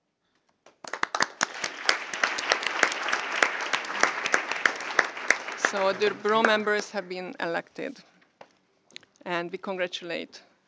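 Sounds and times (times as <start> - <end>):
meeting attendees clapping to elect Bureau members by acclamation: 0.7 - 7.0
speech: 5.7 - 8.1, 9.3 - 10.5.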